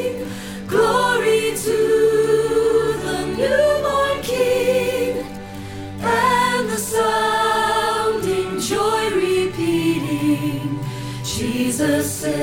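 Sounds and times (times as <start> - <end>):
soprano choir rehearsal part singing: 0.0 - 12.4.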